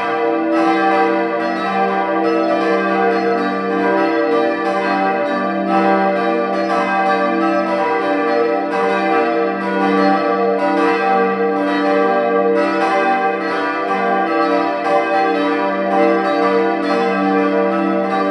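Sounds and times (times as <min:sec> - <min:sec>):
church bells: 0:00.0 - 0:18.3.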